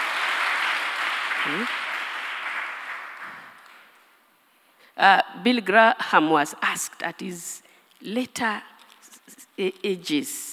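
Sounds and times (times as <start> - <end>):
audience clapping: 0.0 - 4.0
speech: 1.4 - 1.9, 5.0 - 8.7, 9.3 - 10.5.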